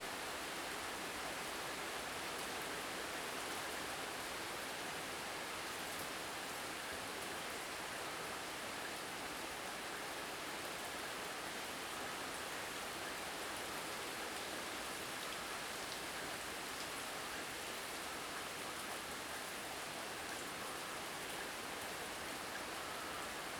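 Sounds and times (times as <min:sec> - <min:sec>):
afternoon rain at a country house: 0:00.0 - 0:23.5.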